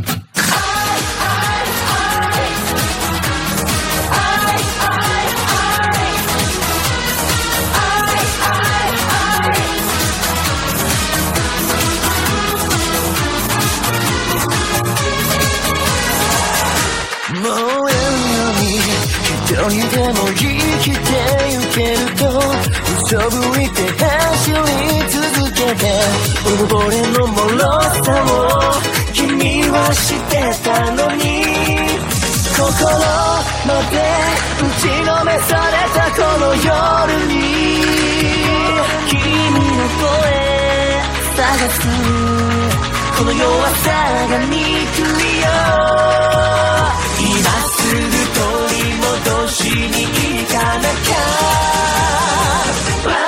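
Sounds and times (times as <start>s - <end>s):
Japanese music: 0.2s - 53.1s.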